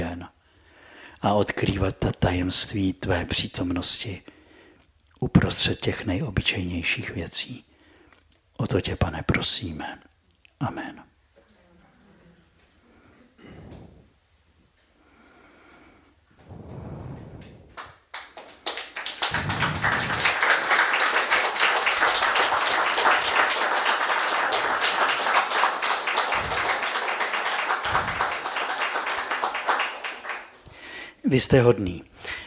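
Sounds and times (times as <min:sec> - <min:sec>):
speech: 0:01.2 - 0:04.4, 0:05.2 - 0:07.7, 0:08.6 - 0:11.1, 0:31.3 - 0:32.1
audience clapping after lecture: 0:17.7 - 0:30.7.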